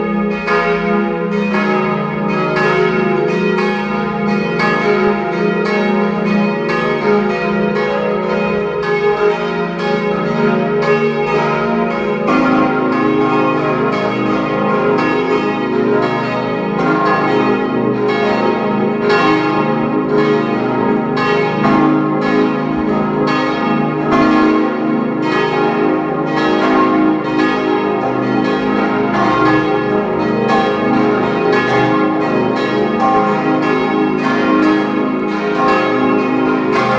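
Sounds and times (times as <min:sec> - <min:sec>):
parish church bells ringing at noon in Kirchdorf an der Krems, Upper Austria: 0:00.0 - 0:36.9.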